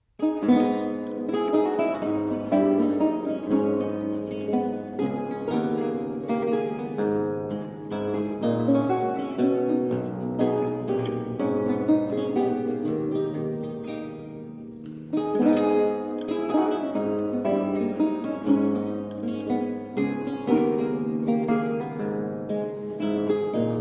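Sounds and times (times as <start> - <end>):
lute duet in A minor: 0.0 - 23.7.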